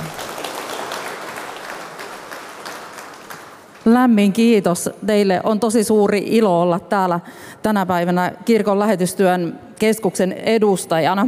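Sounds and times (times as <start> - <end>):
audience applause welcoming a speaker: 0.0 - 3.8
speech: 3.8 - 11.2.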